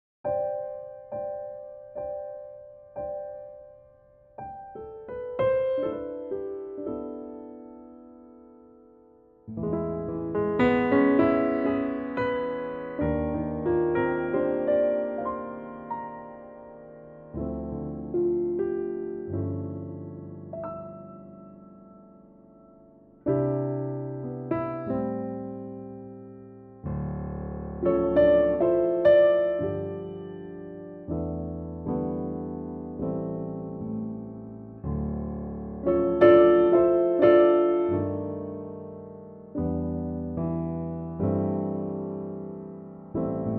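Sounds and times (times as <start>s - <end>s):
piano track in C: 0.2s - 43.5s.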